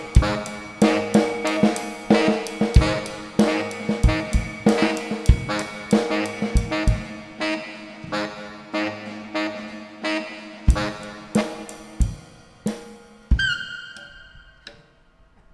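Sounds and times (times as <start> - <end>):
saxophone loop: 0.0 - 12.0.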